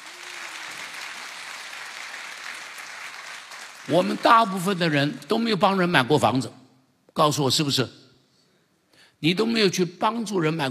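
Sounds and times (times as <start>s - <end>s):
audience applause: 0.0s - 5.0s
speech: 3.9s - 6.6s, 7.2s - 8.0s, 9.2s - 10.6s.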